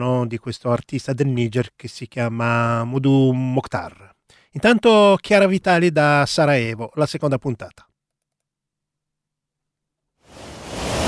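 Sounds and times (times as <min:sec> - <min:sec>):
speech: 0:00.0 - 0:07.9
waterfalls at Una National Park: 0:10.3 - 0:11.0.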